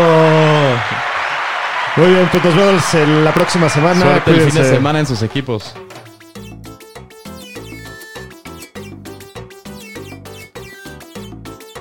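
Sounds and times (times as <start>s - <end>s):
applause: 0.0s - 5.7s
speech: 2.0s - 6.0s.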